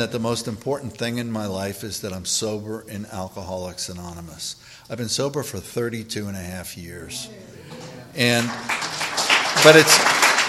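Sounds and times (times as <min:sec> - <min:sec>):
speech: 0:00.0 - 0:08.9, 0:09.6 - 0:10.1
audience applause: 0:07.7 - 0:10.4.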